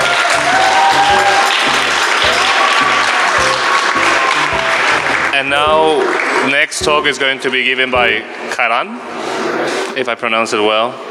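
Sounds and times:
audience applause: 0:00.0 - 0:06.7
speech: 0:05.5 - 0:09.1, 0:10.0 - 0:11.0.

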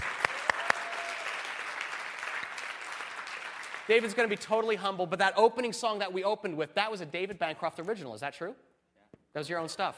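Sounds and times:
room full of people clapping: 0:00.0 - 0:04.8
speech: 0:03.9 - 0:08.7, 0:09.3 - 0:09.9.

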